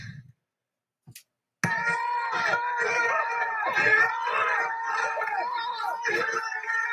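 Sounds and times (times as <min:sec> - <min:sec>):
crowd of protesters shouting outside a hall: 0:01.6 - 0:06.9.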